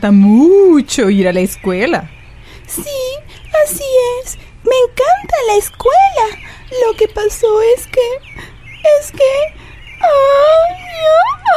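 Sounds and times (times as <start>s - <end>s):
speech: 0.0s - 11.5s
girl crying and wailing: 10.1s - 11.5s.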